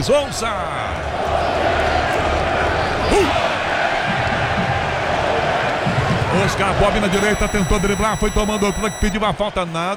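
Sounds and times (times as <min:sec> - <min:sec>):
speech: 0:00.0 - 0:01.8, 0:03.1 - 0:03.5, 0:06.3 - 0:09.9
football stadium crowd: 0:00.0 - 0:06.9.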